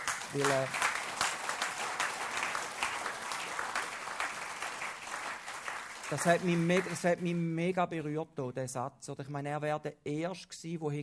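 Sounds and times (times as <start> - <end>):
crowd applauding: 0.0 - 7.4
speech: 0.3 - 0.8, 6.1 - 11.0.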